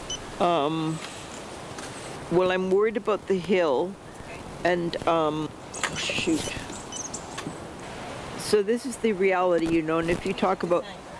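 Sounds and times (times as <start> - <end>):
electric wheelchair stalling beep: 0.0 - 0.2, 6.9 - 7.2
speech: 0.4 - 1.2, 2.3 - 4.0, 4.6 - 6.6, 8.5 - 11.0.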